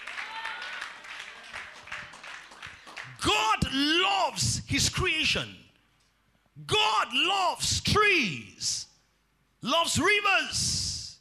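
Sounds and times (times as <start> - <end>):
audience clapping: 0.0 - 3.6
speech: 3.2 - 5.6, 6.6 - 8.9, 9.6 - 10.8.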